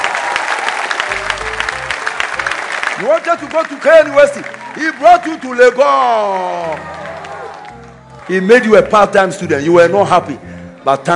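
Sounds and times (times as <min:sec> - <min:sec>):
audience clapping hands: 0:00.0 - 0:08.8
speech: 0:03.0 - 0:07.0, 0:08.3 - 0:11.1.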